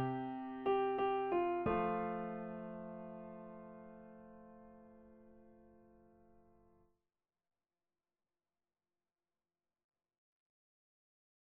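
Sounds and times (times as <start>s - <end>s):
MIDI piano: 0.0s - 6.7s.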